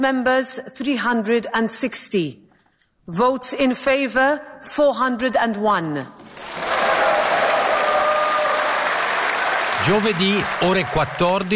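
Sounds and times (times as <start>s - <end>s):
speech: 0.0s - 2.4s, 3.1s - 6.6s, 9.8s - 11.5s
applause in parliament after vote result: 6.3s - 11.5s.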